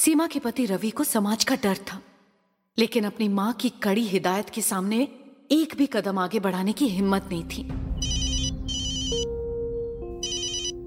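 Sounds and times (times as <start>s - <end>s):
speech: 0.0s - 2.1s, 2.8s - 7.9s
telephone ringing: 8.0s - 9.3s, 10.2s - 10.8s.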